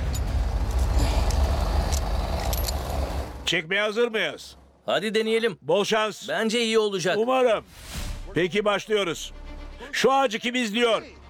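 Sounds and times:
heavy truck engine at full throttle: 0:00.0 - 0:03.6
speech: 0:03.5 - 0:11.2.

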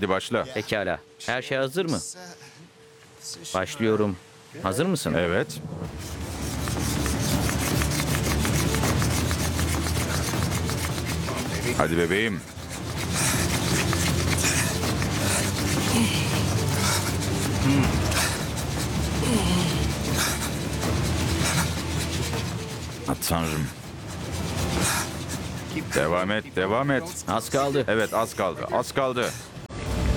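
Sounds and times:
speech: 0:00.0 - 0:02.6, 0:03.2 - 0:06.2, 0:11.7 - 0:12.6, 0:23.1 - 0:23.8, 0:25.8 - 0:29.5
rubbing wooden sticks to make fire: 0:05.9 - 0:29.5.

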